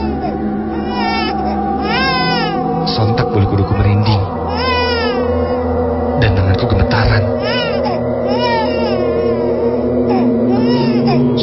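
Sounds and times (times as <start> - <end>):
baby crying: 0.0 - 2.7, 4.4 - 5.8, 7.0 - 11.4
steady low drone: 0.0 - 11.4.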